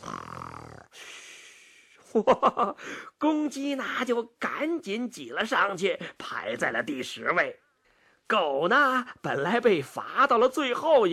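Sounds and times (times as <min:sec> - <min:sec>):
pig snoring while asleep: 0:00.0 - 0:01.0
speech: 0:02.1 - 0:07.6, 0:08.3 - 0:11.1.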